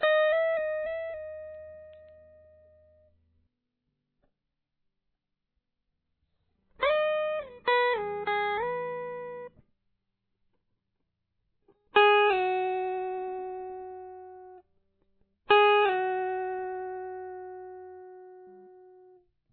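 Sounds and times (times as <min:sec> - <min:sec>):
guitar: 0:00.0 - 0:03.4, 0:06.6 - 0:09.7, 0:11.6 - 0:19.3.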